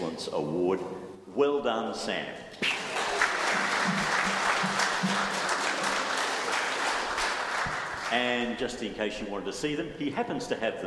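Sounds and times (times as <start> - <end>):
speech: 0.2 - 2.8, 8.1 - 10.8
audience clapping: 2.6 - 8.6.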